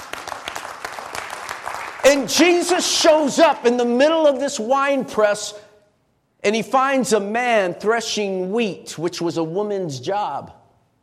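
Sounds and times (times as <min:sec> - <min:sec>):
audience clapping: 0:00.0 - 0:02.8
speech: 0:02.1 - 0:05.6, 0:06.4 - 0:10.6.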